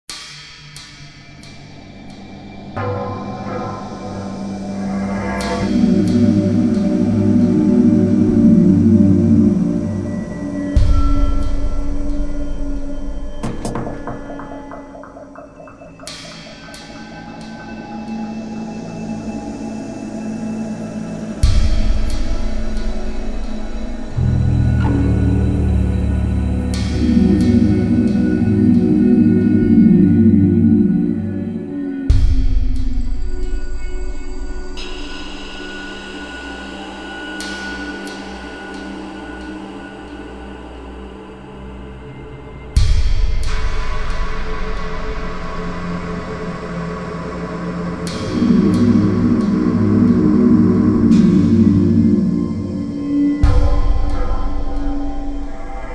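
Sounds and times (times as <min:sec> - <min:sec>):
suspense music: 0:00.1 - 0:55.9.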